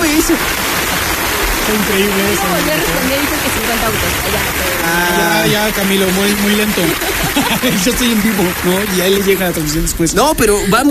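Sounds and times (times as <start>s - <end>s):
laughter: 0.0s - 9.8s
applause: 0.0s - 10.0s
speech: 0.2s - 0.7s, 1.6s - 10.8s.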